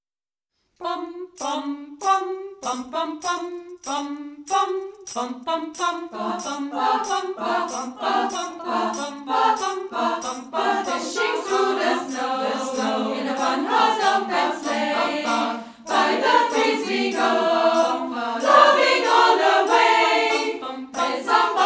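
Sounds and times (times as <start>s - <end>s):
Christmas song: 0.8s - 21.6s.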